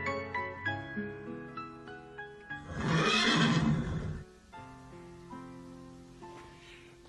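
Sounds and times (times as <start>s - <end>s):
horse whinnying in a radio drama: 2.6s - 4.3s.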